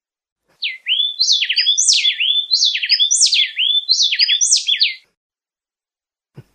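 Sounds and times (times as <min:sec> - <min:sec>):
two birds singing a duet: 0:00.6 - 0:05.1.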